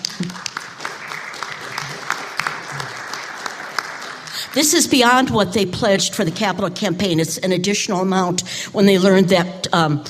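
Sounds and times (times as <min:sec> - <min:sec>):
room full of people clapping: 0:00.0 - 0:05.6
speech: 0:04.5 - 0:10.0.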